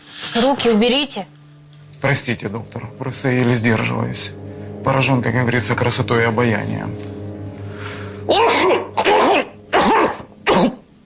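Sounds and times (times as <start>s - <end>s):
speech: 0.4s - 1.4s, 2.0s - 7.2s, 8.3s - 8.8s
man coughing after choking on a crumb: 8.3s - 10.9s.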